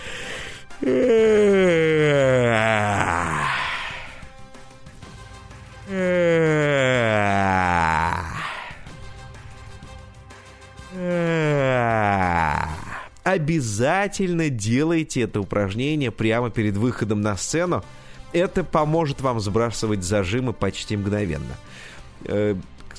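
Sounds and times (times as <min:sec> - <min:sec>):
person yawning out loud with voice: 0:00.0 - 0:04.4, 0:05.9 - 0:09.0, 0:10.9 - 0:13.1
speech: 0:00.8 - 0:01.5, 0:13.5 - 0:22.7.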